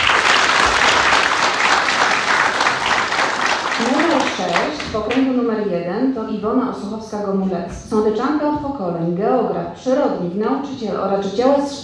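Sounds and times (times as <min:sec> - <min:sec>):
audience applause: 0:00.0 - 0:04.9
speech: 0:05.3 - 0:11.8.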